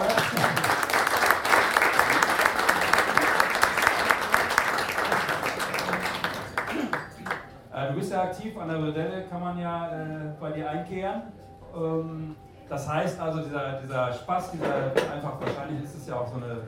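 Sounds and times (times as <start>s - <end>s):
crowd applause: 0.0s - 7.5s
speech: 8.3s - 16.6s.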